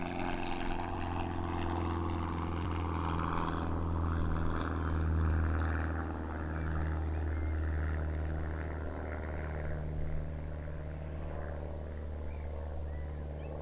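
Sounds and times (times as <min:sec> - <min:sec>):
propeller plane: 0:00.0 - 0:13.6
birds singing: 0:05.3 - 0:13.6.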